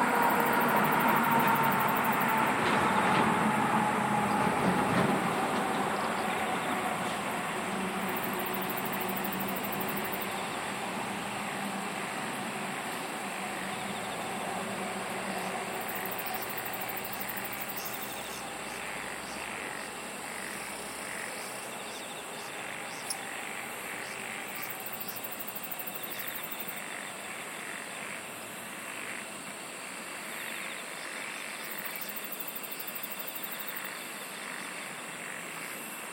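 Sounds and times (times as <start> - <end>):
dense even insect chorus: 0.0 - 36.1.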